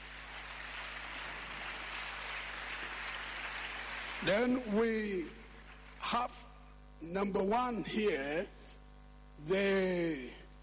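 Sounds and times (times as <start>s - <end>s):
audience clapping: 0.0s - 6.2s
speech: 4.2s - 5.4s, 6.1s - 8.6s, 9.4s - 10.4s.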